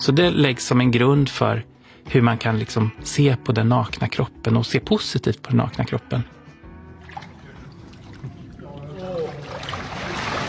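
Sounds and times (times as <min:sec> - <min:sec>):
speech: 0:00.0 - 0:06.4
water sloshing as someone wades in: 0:06.9 - 0:10.4.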